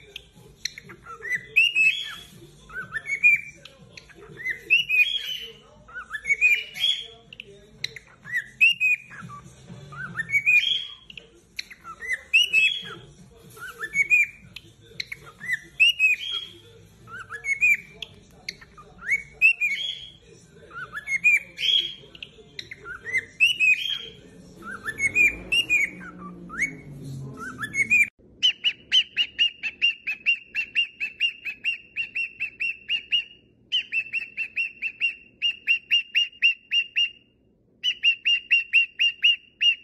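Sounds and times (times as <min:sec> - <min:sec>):
low background chatter: 0:00.0 - 0:39.2
cockatiel whistled song: 0:00.0 - 0:39.8.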